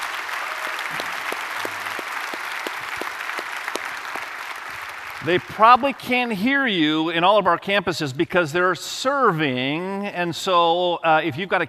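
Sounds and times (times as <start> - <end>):
audience applause: 0.0 - 6.4
speech: 5.2 - 11.6.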